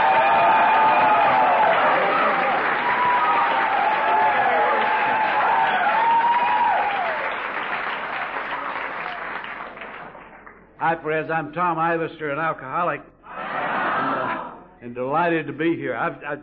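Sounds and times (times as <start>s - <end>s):
audience applause: 0.0s - 10.6s
speech: 10.9s - 13.1s, 14.9s - 16.4s.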